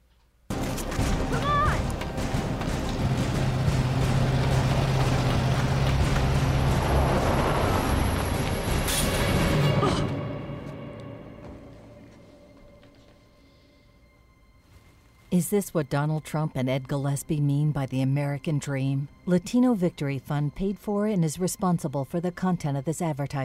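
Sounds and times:
rushing road noise: 0.5 - 9.9
truck engine roaring: 0.5 - 10.0
speech: 15.4 - 23.4.

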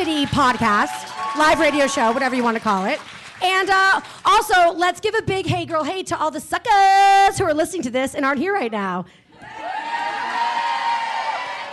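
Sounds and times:
live audience cheering and shouting: 0.0 - 2.4, 9.4 - 11.7
speech: 0.0 - 9.5.

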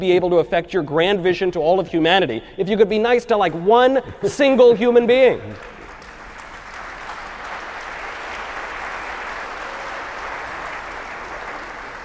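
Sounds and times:
speech: 0.0 - 5.8
audience clapping: 5.4 - 12.0.

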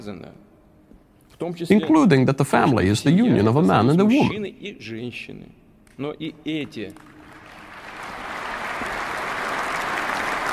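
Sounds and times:
speech: 0.0 - 0.5, 1.4 - 7.1
people applauding: 6.9 - 10.5.

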